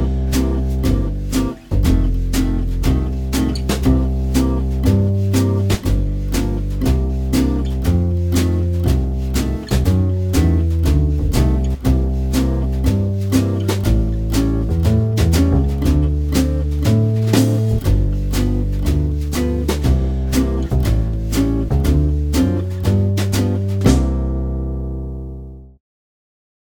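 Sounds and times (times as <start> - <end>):
jazz blues guitar in C major: 0.0 - 25.5.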